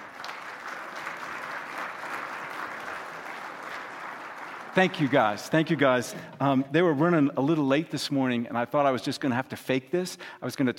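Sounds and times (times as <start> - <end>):
audience clapping at church: 0.0 - 6.6
speech: 4.8 - 10.7.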